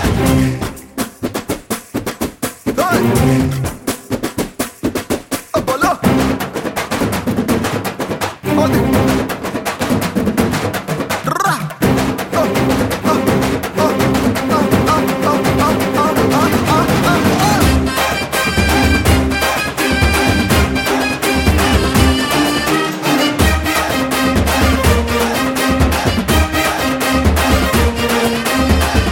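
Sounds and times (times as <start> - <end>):
drum beats ringtone: 0.0 - 29.1.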